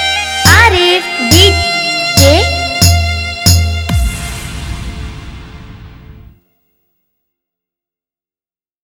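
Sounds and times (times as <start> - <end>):
electronic vibration dance mix: 0.2 - 6.3.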